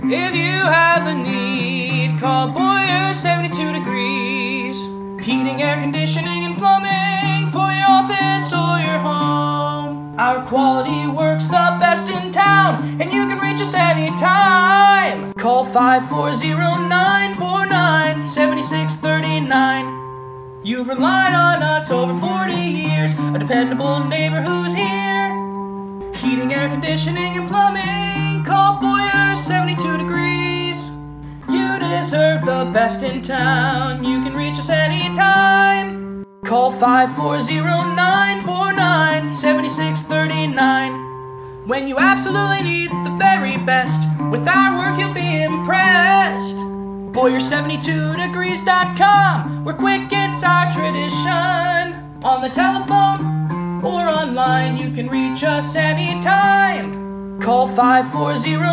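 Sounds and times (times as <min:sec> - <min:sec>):
guitar: 0:00.0 - 0:58.7.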